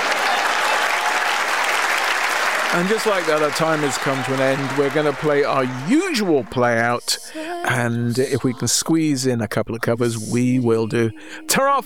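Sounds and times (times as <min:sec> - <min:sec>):
audience applause: 0:00.0 - 0:06.8
speech: 0:02.7 - 0:11.8.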